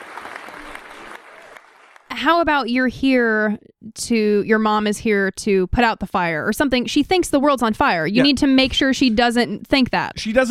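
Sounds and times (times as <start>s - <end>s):
audience clapping: 0.0s - 2.3s
speech: 2.2s - 10.4s.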